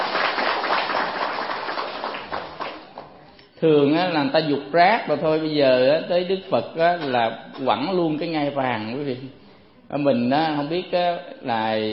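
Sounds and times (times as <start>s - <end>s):
audience applause: 0.0s - 3.1s
speech: 3.6s - 11.9s.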